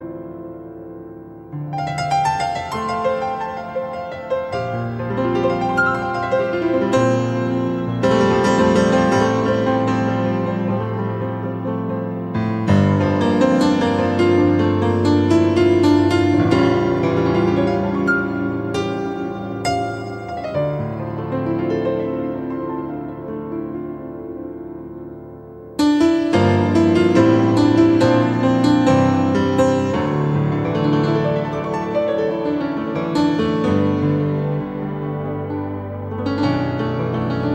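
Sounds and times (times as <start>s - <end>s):
blue piano: 0.0s - 37.5s.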